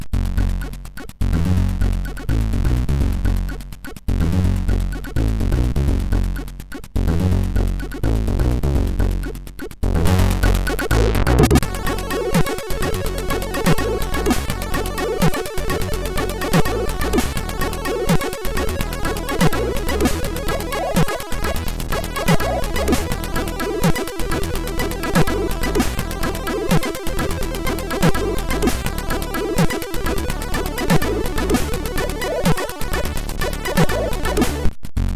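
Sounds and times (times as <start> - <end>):
MOS 6581R2 SID chip music: 0.2 - 34.7.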